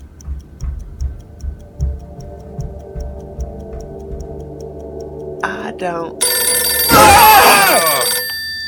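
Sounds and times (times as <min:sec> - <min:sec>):
speech: 0:05.8 - 0:06.3
telephone ringing in a warbling electronic trill: 0:06.2 - 0:08.6.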